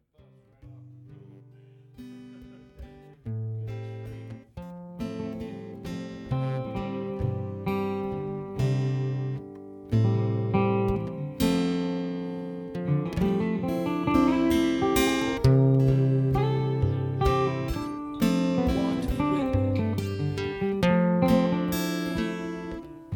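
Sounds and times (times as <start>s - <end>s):
jam session: 5.2s - 23.1s.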